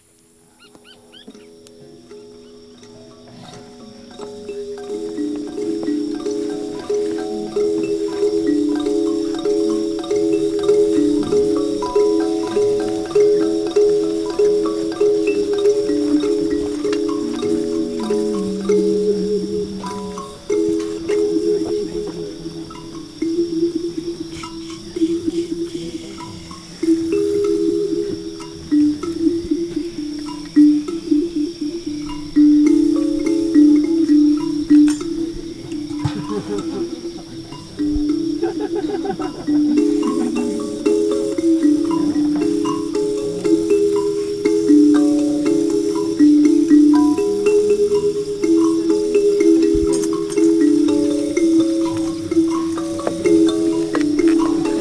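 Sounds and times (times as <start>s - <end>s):
kalimba: 0.0s - 54.7s
laughter: 17.2s - 22.7s, 24.3s - 27.2s, 35.6s - 42.9s, 53.3s - 54.7s.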